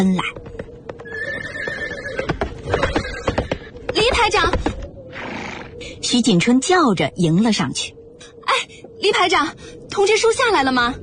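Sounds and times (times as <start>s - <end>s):
speech: 0.0s - 0.6s, 4.2s - 4.7s, 6.1s - 8.0s, 8.6s - 11.0s
galloping horse hoofbeats: 0.0s - 4.8s
horse neighing: 1.0s - 3.6s.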